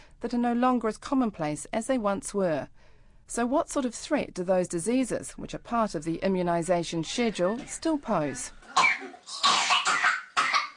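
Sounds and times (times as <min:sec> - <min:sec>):
speech: 0:00.2 - 0:09.6
child coughing with whooping cough: 0:08.8 - 0:10.7.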